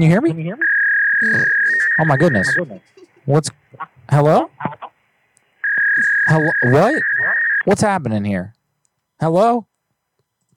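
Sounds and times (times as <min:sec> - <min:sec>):
speech: 0:00.0 - 0:04.9, 0:06.0 - 0:08.6, 0:09.2 - 0:09.7
dial-up modem connection tone: 0:00.6 - 0:02.7, 0:05.6 - 0:07.6.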